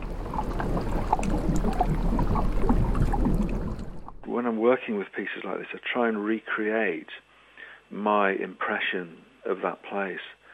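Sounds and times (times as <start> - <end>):
seawater washing back and forth over hydrophones: 0.0 - 4.3
speech: 4.4 - 7.3, 7.9 - 10.4.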